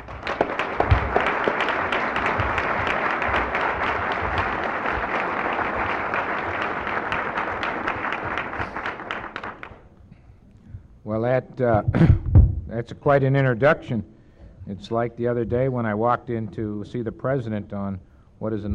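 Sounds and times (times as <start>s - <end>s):
applause welcoming Secretary Skinner at a press club event: 0.0s - 9.9s
speech: 11.6s - 12.2s, 12.8s - 14.1s, 14.7s - 18.7s.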